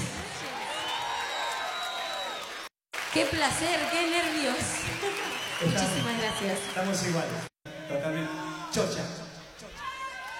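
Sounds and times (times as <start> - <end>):
audience applause: 0.0 - 7.5
speech: 3.1 - 9.2.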